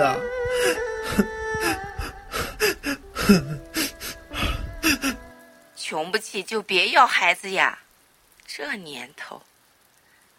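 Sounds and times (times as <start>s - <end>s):
woman crying loudly while clutching a doctor's trouser leg: 0.0s - 5.4s
woman's gasping breaths: 0.4s - 5.3s
speech: 0.8s - 1.4s, 3.3s - 3.5s, 6.1s - 7.8s, 8.5s - 9.5s.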